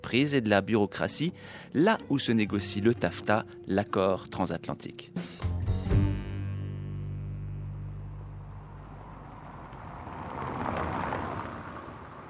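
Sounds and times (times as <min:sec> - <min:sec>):
speech: 0:00.1 - 0:06.0
street traffic: 0:06.5 - 0:12.2.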